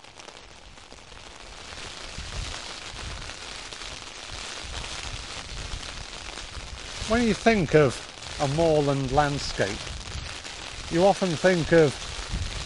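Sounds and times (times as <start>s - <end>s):
heavy rain lashing down on open moorland: 0.0s - 12.6s
low buffeting rumbles: 6.6s - 12.6s
speech: 7.1s - 9.9s, 10.9s - 12.0s.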